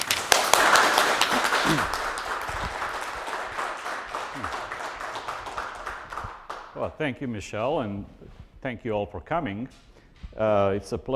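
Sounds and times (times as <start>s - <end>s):
audience applauding to welcome a professor as a speaker: 0.0s - 6.8s
speech: 6.8s - 11.1s.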